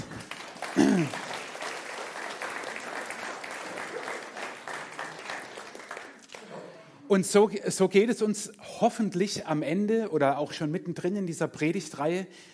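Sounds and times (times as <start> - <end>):
applause: 0.0 - 6.8
speech: 0.8 - 1.3, 7.1 - 12.5.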